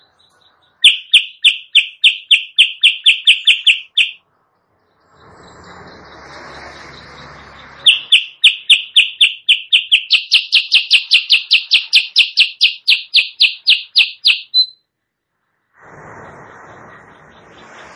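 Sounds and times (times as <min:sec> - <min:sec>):
sooty-headed bulbul chirping: 0:00.0 - 0:04.2, 0:05.1 - 0:14.8.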